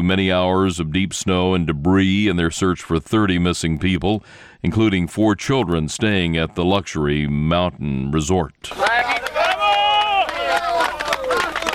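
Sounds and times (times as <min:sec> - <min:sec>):
speech: 0:00.0 - 0:09.2
rescuers cheering: 0:08.7 - 0:11.7.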